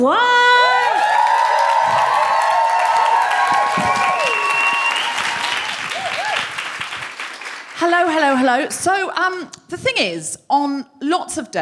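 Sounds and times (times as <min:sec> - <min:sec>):
speech: 0:00.0 - 0:00.3, 0:07.9 - 0:11.5
audience applause as a comedian takes the stage: 0:00.6 - 0:08.4
crowd noise: 0:00.8 - 0:07.2.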